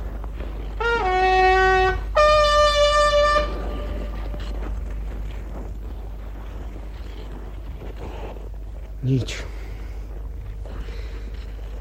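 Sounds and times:
horn blast: 0.6s - 4.8s
speech: 9.1s - 9.5s.

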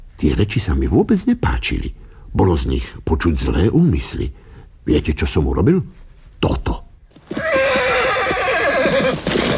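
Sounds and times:
speech: 0.2s - 6.8s
horse neighing and rearing up on its hind legs: 7.2s - 9.5s.

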